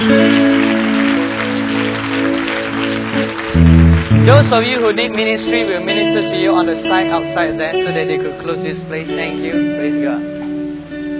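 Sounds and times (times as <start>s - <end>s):
audience clapping: 0.0s - 5.8s
speech: 4.5s - 10.4s.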